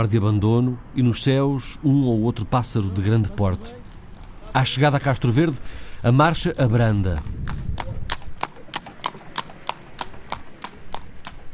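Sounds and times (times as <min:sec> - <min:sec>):
speech: 0:00.0 - 0:03.8, 0:04.5 - 0:07.6
horses' hooves clip-clopping on a road: 0:03.2 - 0:05.5, 0:06.3 - 0:11.5.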